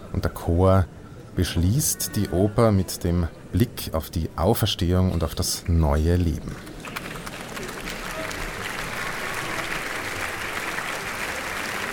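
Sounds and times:
speech: 0.1 - 6.7
large audience applause for the conductor: 6.6 - 11.9.

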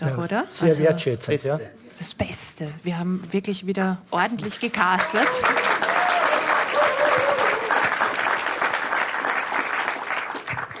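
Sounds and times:
speech: 0.0 - 6.0
studio audience applauding: 5.0 - 10.7.

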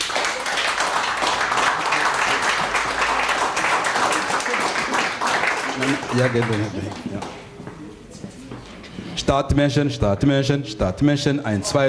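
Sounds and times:
crowd applauding: 0.0 - 7.4
speech: 5.9 - 7.4, 9.3 - 11.8.

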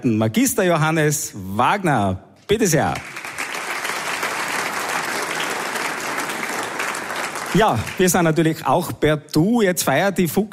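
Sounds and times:
speech: 0.0 - 3.2, 7.6 - 10.5
audience applause: 2.7 - 8.7.

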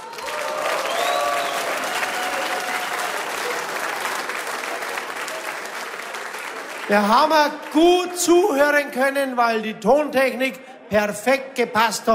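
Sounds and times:
audience applause: 0.0 - 7.9
speech: 6.9 - 12.1.

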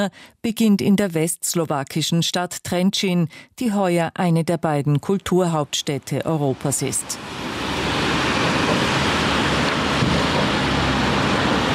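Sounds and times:
speech: 0.0 - 7.7
strong wind blowing across an open river bridge: 7.1 - 11.7.

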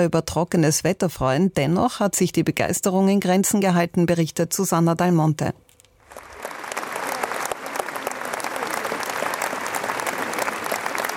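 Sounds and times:
speech: 0.0 - 6.3
polite audience applause after opera premiere: 6.0 - 11.1.

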